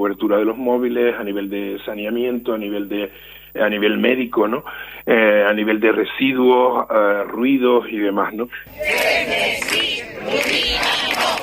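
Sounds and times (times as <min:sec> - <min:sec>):
speech: 0:00.0 - 0:11.0
protest crowd shouting slogans: 0:08.7 - 0:11.4.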